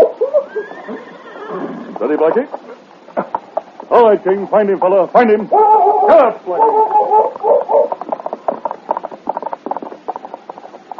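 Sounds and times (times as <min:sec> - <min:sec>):
dog barking: 0:00.0 - 0:00.2, 0:05.6 - 0:08.0
speech: 0:02.0 - 0:02.6, 0:04.0 - 0:08.0.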